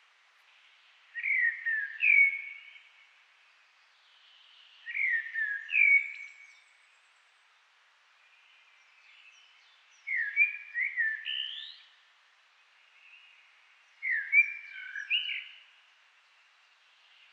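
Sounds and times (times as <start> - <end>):
common blackbird Turdus merula singing: 1.2 - 2.9, 4.7 - 6.7, 9.0 - 11.9, 14.0 - 15.6.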